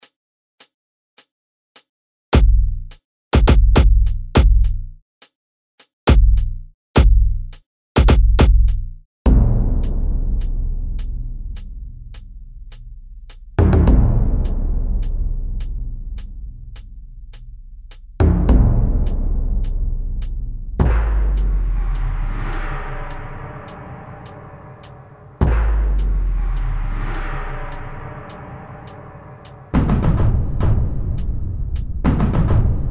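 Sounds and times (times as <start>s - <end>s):
tuned punchy bass drum: 2.4s - 5.0s, 6.1s - 12.2s, 13.6s - 22.7s, 25.4s - 26.7s, 29.8s - 32.8s.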